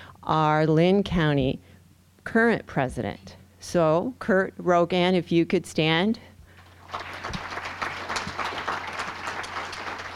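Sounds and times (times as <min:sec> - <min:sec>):
speech: 0:00.3 - 0:01.7, 0:02.3 - 0:06.3
audience clapping: 0:06.6 - 0:10.1.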